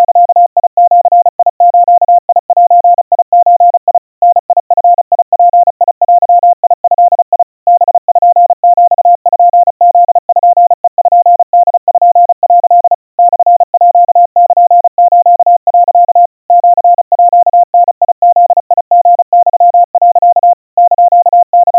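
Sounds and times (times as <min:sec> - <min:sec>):
Morse code tones at 700 Hz and 120 cpm: 0:00.0 - 0:21.7.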